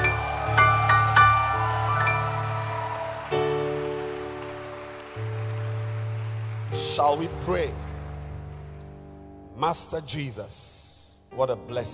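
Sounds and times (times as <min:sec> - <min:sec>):
audience applauding with hand claps: 0:00.0 - 0:09.1
speech: 0:07.0 - 0:07.8, 0:09.6 - 0:11.9.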